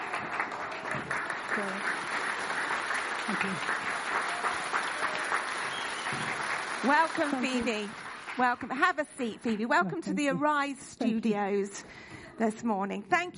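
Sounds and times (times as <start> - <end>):
audience clapping: 0.0 - 9.3
speech: 1.6 - 2.0, 3.3 - 4.8, 6.8 - 13.3.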